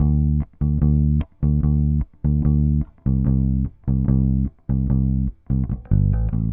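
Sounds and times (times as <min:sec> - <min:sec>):
indie rock bass guitar: 0:00.0 - 0:06.5.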